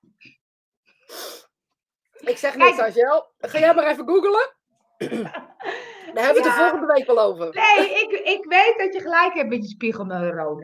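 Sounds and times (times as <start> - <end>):
speech: 2.3 - 5.5, 6.1 - 10.6
person coughing: 5.0 - 5.5
laughter: 5.0 - 8.7.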